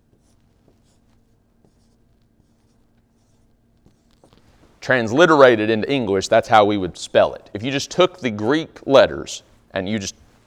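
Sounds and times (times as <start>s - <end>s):
writing on a board: 0.0s - 4.8s
speech: 4.8s - 10.2s.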